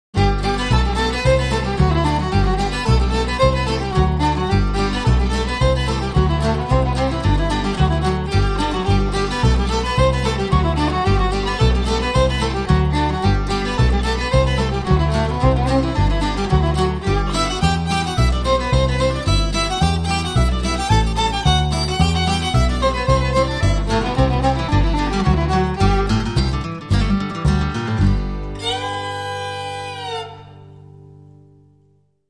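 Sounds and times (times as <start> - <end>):
flatpicked fiddle tune: 0.2 - 31.2.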